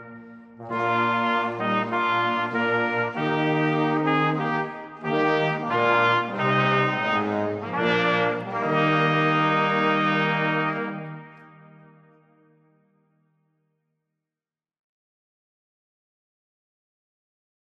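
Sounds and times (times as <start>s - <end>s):
brass ensemble playing an intrada: 0.0s - 12.6s.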